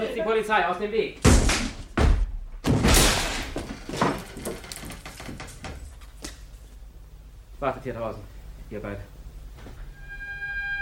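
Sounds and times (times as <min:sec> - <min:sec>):
speech: 0:00.2 - 0:01.3, 0:07.6 - 0:09.1
heavy thuds and bangs of door being forced: 0:01.2 - 0:05.9
door being forced open: 0:01.2 - 0:06.1.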